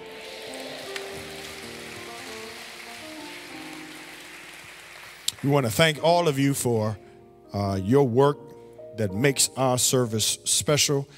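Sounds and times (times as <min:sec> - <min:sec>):
audience applause: 0:00.0 - 0:06.0
speech: 0:05.4 - 0:08.4, 0:09.0 - 0:11.1.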